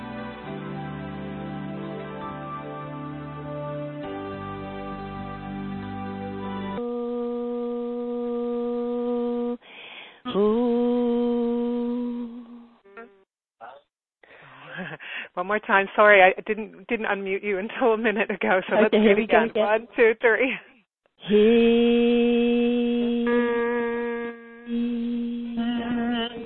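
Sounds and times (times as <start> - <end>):
group of people humming together: 6.8 - 9.6, 10.3 - 13.2, 21.2 - 26.4
speech: 10.3 - 10.6, 15.4 - 22.6.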